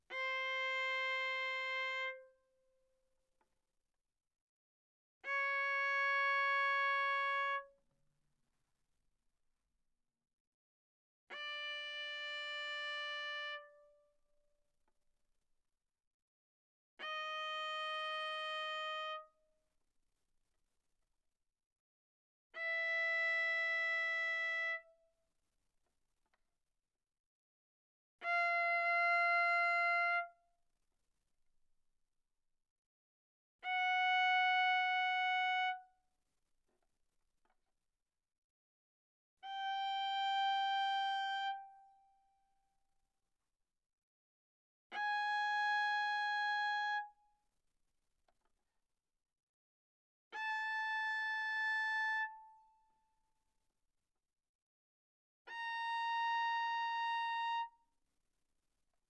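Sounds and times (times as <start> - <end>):
viola bowed on A string fortissimo: 0.1 - 2.4, 5.3 - 7.8, 11.3 - 14.0, 17.0 - 19.3, 22.6 - 24.9, 28.2 - 30.4, 33.6 - 35.9, 39.4 - 42.0, 45.0 - 47.2, 50.4 - 52.7, 55.5 - 57.8.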